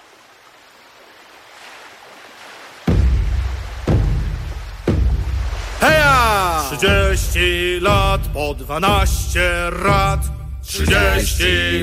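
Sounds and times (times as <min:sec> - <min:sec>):
sea waves breaking on shore: 0:00.0 - 0:07.9
speech: 0:06.7 - 0:11.8.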